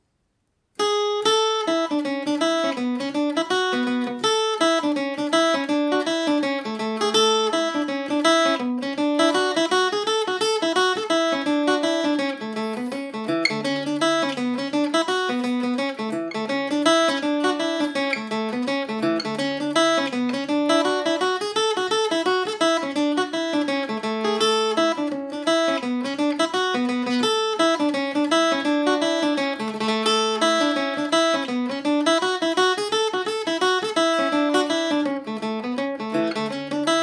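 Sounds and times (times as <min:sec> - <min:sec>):
Irish mandolin playing in A major: 0:00.8 - 0:37.0.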